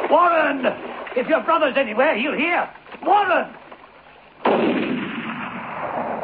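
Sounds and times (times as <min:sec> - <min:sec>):
speech: 0:00.1 - 0:03.6
rifle gunshot: 0:04.4 - 0:06.1.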